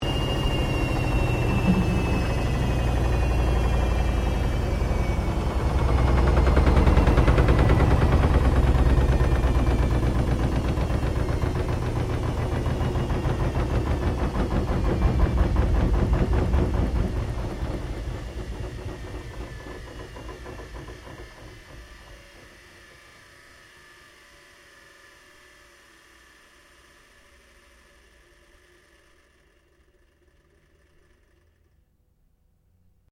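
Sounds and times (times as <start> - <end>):
LG front-loader washing machine shutting down: 0.0 - 23.0.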